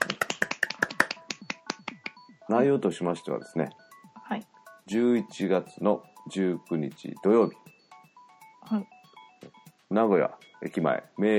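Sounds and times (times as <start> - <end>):
small group clapping at a year-end party announcement in Nagoya: 0.0 - 2.3
speech: 2.5 - 7.7, 8.7 - 8.9, 9.9 - 11.3.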